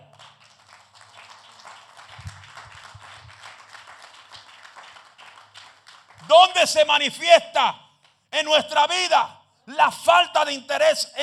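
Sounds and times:
crowd applause: 0:00.0 - 0:06.3
speech: 0:06.3 - 0:07.8, 0:08.4 - 0:11.2.

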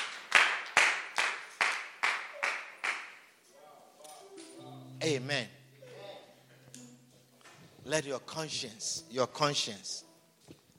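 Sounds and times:
audience clapping: 0:00.0 - 0:03.3
speech: 0:05.0 - 0:05.6, 0:07.9 - 0:10.1.

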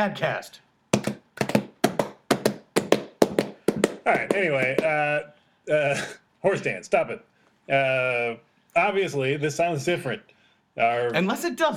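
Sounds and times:
speech: 0:00.0 - 0:00.6, 0:04.0 - 0:11.7
hand clapping distorted by clipping: 0:00.9 - 0:05.0.

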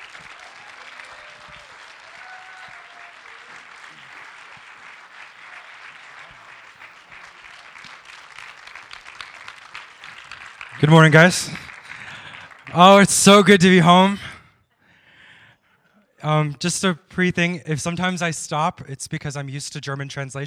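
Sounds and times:
audience applause: 0:00.0 - 0:14.2
speech: 0:10.8 - 0:11.6, 0:12.8 - 0:14.3, 0:16.3 - 0:20.4.

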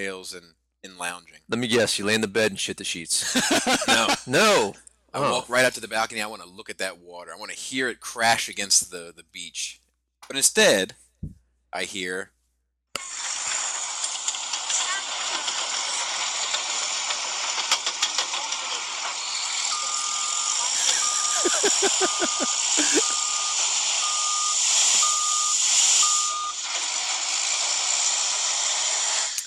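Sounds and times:
speech: 0:00.0 - 0:12.4, 0:13.0 - 0:13.2, 0:21.6 - 0:23.2
laughter: 0:01.5 - 0:02.2, 0:03.1 - 0:05.9, 0:20.7 - 0:23.2
large construction equipment engine: 0:13.0 - 0:29.4
construction equipment reversing beeps: 0:19.6 - 0:26.6.

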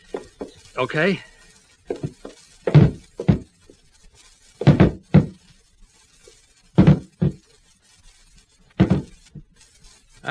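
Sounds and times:
speech: 0:00.8 - 0:01.3
table used as a battering ram against wooden door panels: 0:01.9 - 0:03.5, 0:04.6 - 0:05.4, 0:06.8 - 0:07.4, 0:08.8 - 0:09.5.

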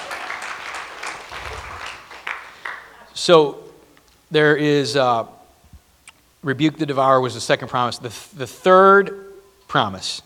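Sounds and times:
audience applause: 0:00.0 - 0:03.1
speech: 0:03.2 - 0:03.6, 0:04.3 - 0:05.4, 0:06.4 - 0:10.2.

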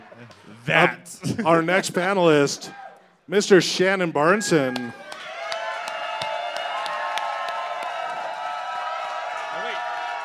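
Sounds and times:
speech: 0:00.2 - 0:05.1
audience cheering and whooping: 0:04.5 - 0:10.2
scattered clapping: 0:04.8 - 0:10.2.

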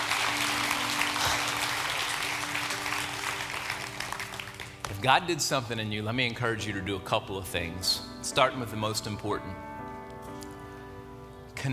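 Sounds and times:
audience clapping: 0:00.0 - 0:05.1
speech: 0:05.0 - 0:09.7, 0:11.6 - 0:11.7.

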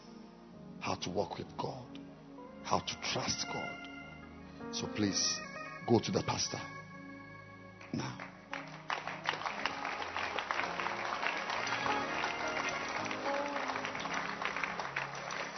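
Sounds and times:
speech: 0:00.8 - 0:02.0, 0:02.6 - 0:03.9, 0:04.7 - 0:06.8, 0:07.9 - 0:08.2
church congregation clapping hands: 0:07.8 - 0:15.5.

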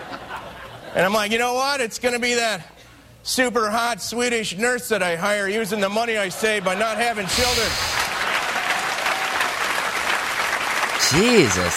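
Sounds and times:
speech: 0:00.9 - 0:08.0, 0:11.1 - 0:11.7
crowd applause: 0:07.1 - 0:11.7.

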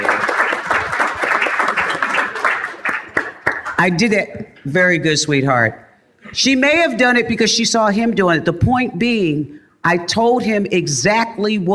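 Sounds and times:
audience applause: 0:00.0 - 0:03.8
speech: 0:03.8 - 0:11.7.

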